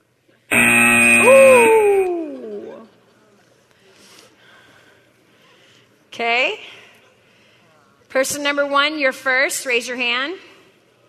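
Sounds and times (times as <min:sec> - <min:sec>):
timer buzzer: 0:00.5 - 0:02.8
speech: 0:08.2 - 0:10.5.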